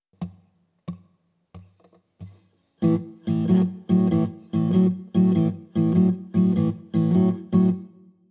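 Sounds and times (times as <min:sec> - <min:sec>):
blues rock guitar in open tunings: 0:02.8 - 0:07.9.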